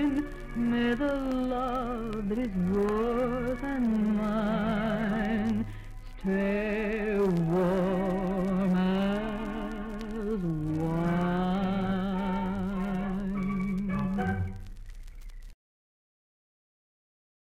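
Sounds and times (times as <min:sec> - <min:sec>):
female vocal: 0:00.0 - 0:14.4
orchestra: 0:13.3 - 0:14.6.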